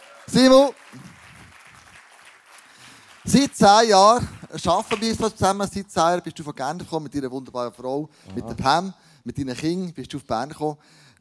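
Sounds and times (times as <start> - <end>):
crowd clapping: 0.0 - 4.3
speech: 0.3 - 1.1, 3.3 - 11.1.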